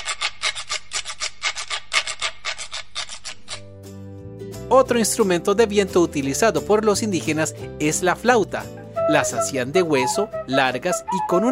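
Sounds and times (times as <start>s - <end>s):
donkey jawbone rattle instrument scraped: 0.0s - 3.7s
speech: 4.7s - 11.4s.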